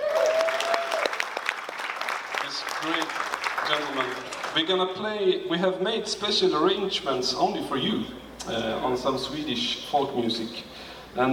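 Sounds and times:
crowd applause: 0.0s - 4.7s
speech: 2.6s - 11.3s.

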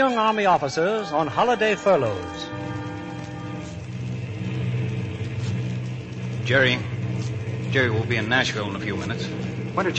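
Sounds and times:
speech: 0.0s - 2.8s, 6.5s - 9.9s
propeller plane engine drone in flight: 2.5s - 9.9s.

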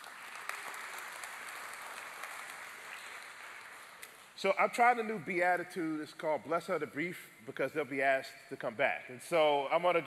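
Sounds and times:
audience applause: 0.0s - 4.3s
speech: 4.4s - 10.0s.

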